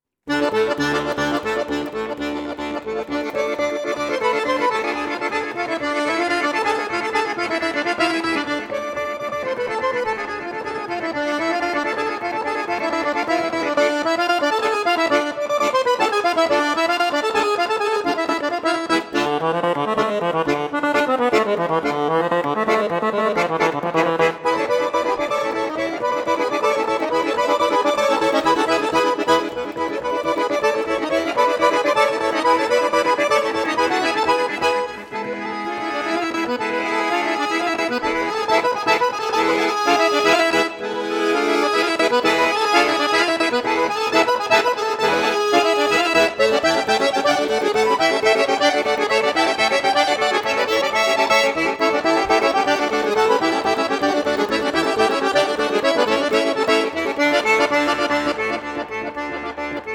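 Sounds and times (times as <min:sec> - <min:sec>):
Bulgarian folk dance suite music: 0:00.3 - 0:59.9.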